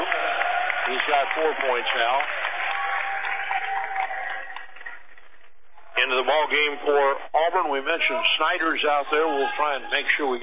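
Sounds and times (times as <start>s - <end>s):
crowd applauding at basketball game: 0.0s - 5.5s
speech: 1.1s - 2.4s, 6.1s - 10.4s.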